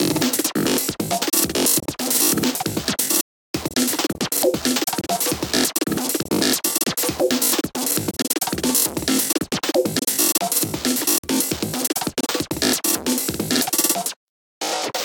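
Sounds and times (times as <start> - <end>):
drum beat: 0.0 - 14.1.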